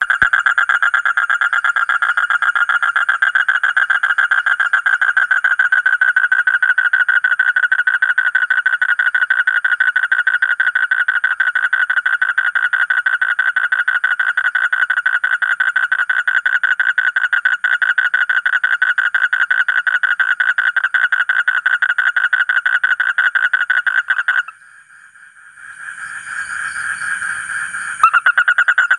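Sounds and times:
Asian common toad calling in buzzy pulses: 0.0 - 28.9.

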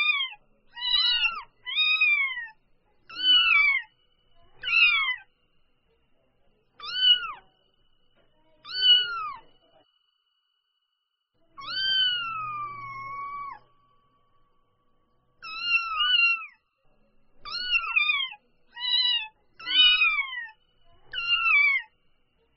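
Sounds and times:
domestic cat kitten mewing: 0.0 - 3.9, 4.6 - 5.2, 8.6 - 9.4, 11.6 - 13.6, 15.4 - 16.6, 17.4 - 20.5, 21.1 - 21.9.

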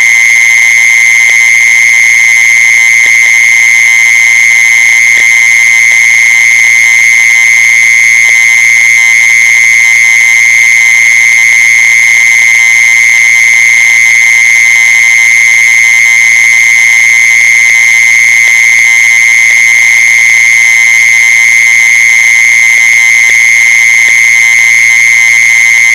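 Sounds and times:
mole cricket buzzing trill: 0.0 - 25.9.

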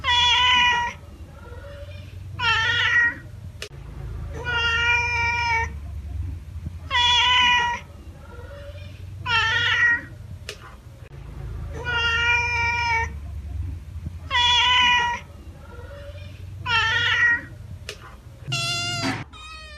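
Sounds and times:
domestic cat giving drawn-out meows: 0.0 - 3.3, 4.4 - 5.8, 6.9 - 10.1, 11.8 - 13.2, 14.3 - 17.5, 18.5 - 19.7.

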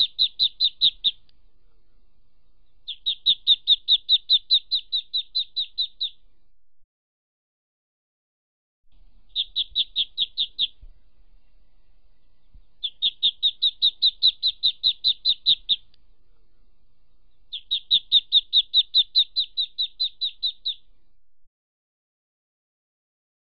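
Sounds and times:
ducklings peeping: 0.0 - 1.8, 2.4 - 6.4, 9.2 - 21.0.

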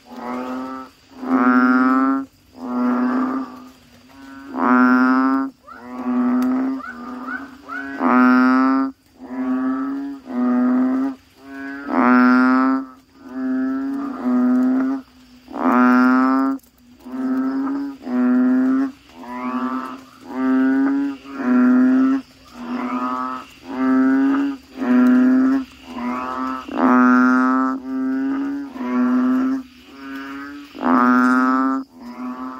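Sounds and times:
Asian common toad calls: 0.0 - 32.5.

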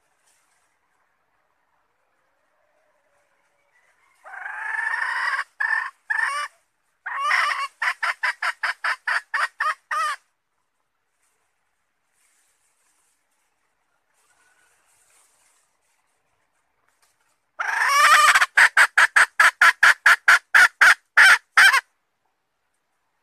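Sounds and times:
red junglefowl hen cackling: 2.3 - 10.3, 17.6 - 22.0.

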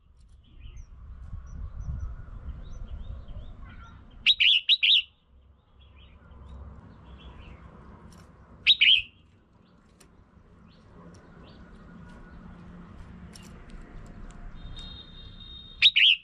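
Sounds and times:
red-whiskered bulbul whistled call: 4.2 - 5.1, 8.7 - 9.2, 14.6 - 16.2.

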